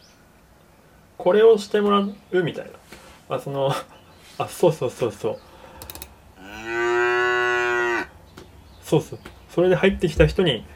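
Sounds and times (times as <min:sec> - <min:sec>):
speech: 0:01.2 - 0:05.5, 0:08.9 - 0:10.7
faint clicks: 0:05.8 - 0:06.1
cow mooing: 0:06.4 - 0:08.2.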